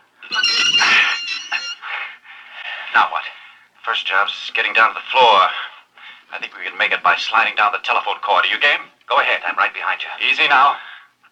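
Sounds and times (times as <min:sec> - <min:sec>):
heavy door squeaking as it's pushed open: 0:00.3 - 0:01.8
speech: 0:02.9 - 0:05.7, 0:06.3 - 0:10.9.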